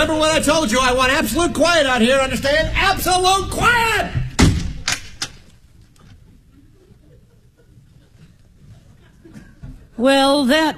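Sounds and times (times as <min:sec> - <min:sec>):
speech: 0:00.0 - 0:04.2, 0:10.0 - 0:10.7
door thudding shut: 0:04.1 - 0:05.4
laughter: 0:06.5 - 0:10.0.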